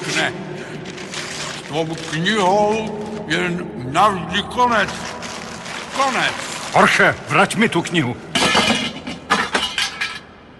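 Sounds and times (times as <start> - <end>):
speech: 0.2 - 0.5, 1.7 - 5.2, 6.0 - 8.3
lamp glass breaking: 8.4 - 10.2.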